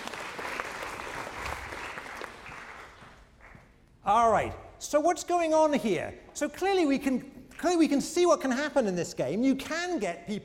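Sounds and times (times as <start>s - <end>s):
room full of people clapping: 0.0s - 3.8s
speech: 4.1s - 10.4s.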